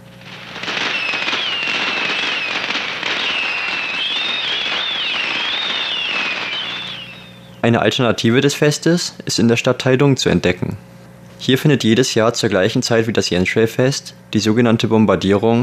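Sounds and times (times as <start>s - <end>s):
fireworks and firecrackers exploding: 0.0s - 7.5s
speech: 7.6s - 15.6s.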